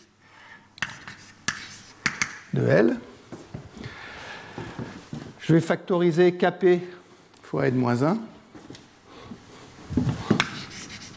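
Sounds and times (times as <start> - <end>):
chalk or pen writing during a physics lecture: 0.8 - 2.3, 10.4 - 11.1
speech: 2.6 - 3.1, 5.5 - 8.3.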